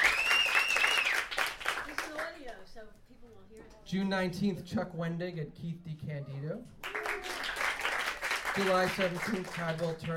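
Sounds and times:
audience clapping: 0.0s - 2.4s, 6.8s - 10.1s
speech: 3.9s - 6.8s, 8.6s - 10.1s.

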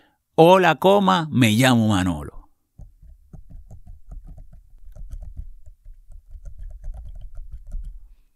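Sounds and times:
speech: 0.4s - 2.3s
typing on a braille keyboard: 3.0s - 8.1s.

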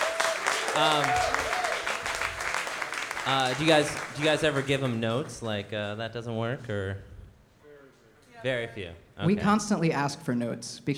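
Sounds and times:
voices whooping and cheering: 0.0s - 2.5s
audience applause: 0.0s - 5.7s
speech: 0.8s - 1.5s, 3.2s - 7.1s, 8.4s - 10.9s.

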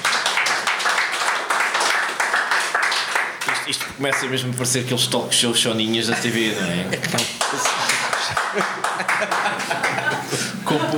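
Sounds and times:
crowd applauding: 0.0s - 4.5s, 7.2s - 10.9s
speech: 3.7s - 7.7s, 8.6s - 10.9s
laughter: 6.0s - 10.9s.

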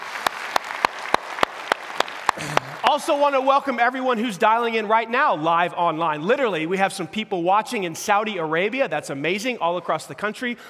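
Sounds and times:
applause at a church service: 0.0s - 2.9s
speech: 2.4s - 10.6s.

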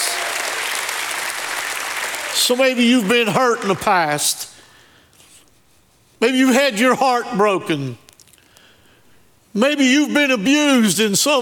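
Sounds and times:
audience hand clapping: 0.0s - 4.0s
speech: 2.4s - 4.5s, 6.2s - 8.0s, 9.5s - 11.4s.

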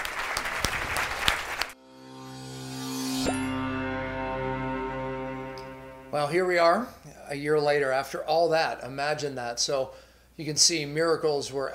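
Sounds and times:
audience applause: 0.0s - 1.8s
sustained layered musical tones: 1.8s - 6.4s
speech: 6.2s - 11.7s.

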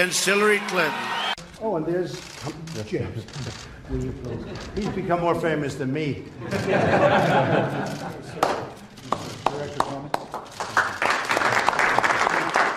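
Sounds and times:
crowd applauding James Comey: 0.0s - 1.4s, 7.9s - 12.7s
speech: 0.0s - 8.6s
laughter: 2.8s - 5.3s, 6.4s - 8.9s.

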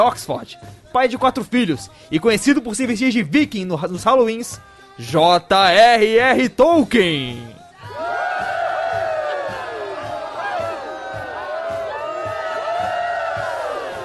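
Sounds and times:
speech: 0.0s - 7.5s
crowd cheering sound effect: 7.8s - 14.0s.

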